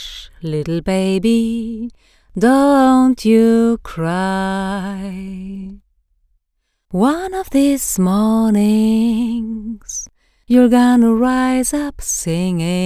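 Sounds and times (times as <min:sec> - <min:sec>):
melancholic singing: 0:00.0 - 0:05.8, 0:06.9 - 0:12.8.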